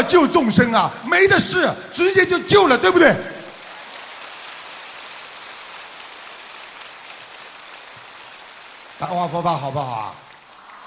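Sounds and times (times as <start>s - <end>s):
speech: 0.0s - 3.3s, 9.0s - 10.2s
audience applause: 3.5s - 10.8s.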